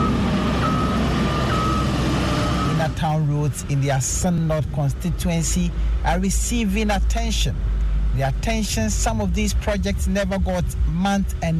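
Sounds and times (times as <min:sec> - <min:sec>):
reversing tone: 0:00.0 - 0:03.0
earth-moving equipment engine rumble: 0:00.0 - 0:11.5
speech: 0:03.0 - 0:11.5.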